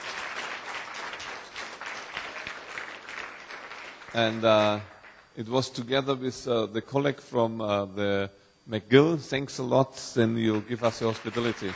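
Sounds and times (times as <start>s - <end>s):
audience clapping: 0.0s - 5.4s, 10.4s - 11.7s
speech: 4.1s - 11.7s.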